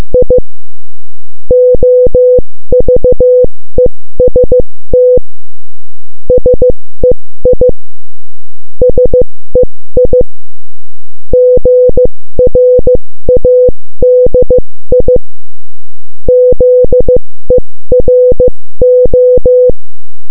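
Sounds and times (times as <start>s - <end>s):
morse code beeps: 1.5s - 3.5s, 4.2s - 5.2s, 6.3s - 7.7s, 8.8s - 10.2s, 11.4s - 15.2s, 16.3s - 19.8s.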